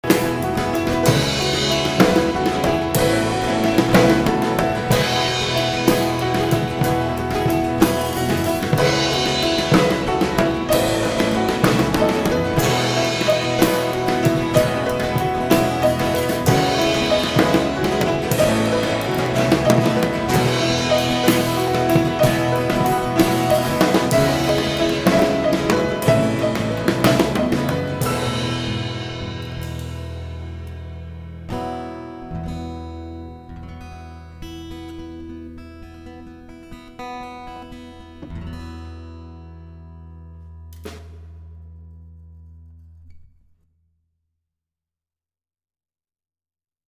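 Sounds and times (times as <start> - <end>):
drum: 0.0 - 30.8.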